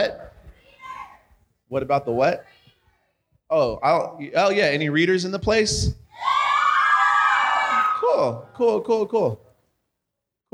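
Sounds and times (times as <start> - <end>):
speech: 0.0 - 0.2, 1.7 - 2.5, 3.5 - 6.4, 8.1 - 9.4
audience member cheering and yelping: 6.1 - 8.9.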